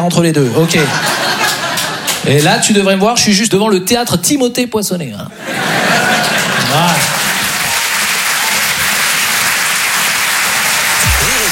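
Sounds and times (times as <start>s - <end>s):
speech: 0.0s - 1.3s, 2.2s - 5.8s
laughter: 0.4s - 2.4s, 5.3s - 7.6s
audience applause: 6.0s - 11.5s.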